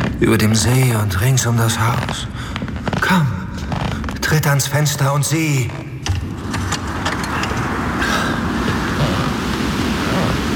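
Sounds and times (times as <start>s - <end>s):
speech: 0.2s - 2.3s, 3.1s - 3.4s, 4.3s - 5.8s
storm wind roaring: 6.1s - 10.5s
churning surf: 6.3s - 10.5s.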